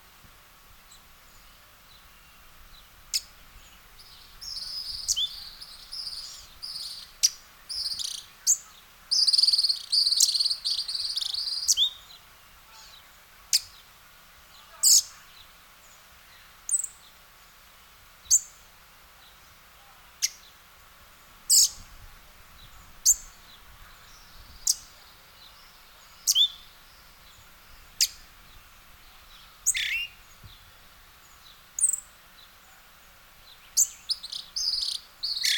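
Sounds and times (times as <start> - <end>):
faint insect hum: 0.0 - 35.5
western red-legged thrush chirping calls: 3.1 - 12.2, 21.3 - 32.1, 33.4 - 35.5.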